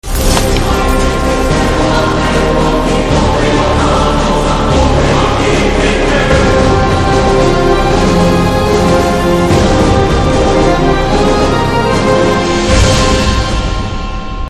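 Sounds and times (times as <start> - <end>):
trailer background music ringtone: 0.0 - 14.4.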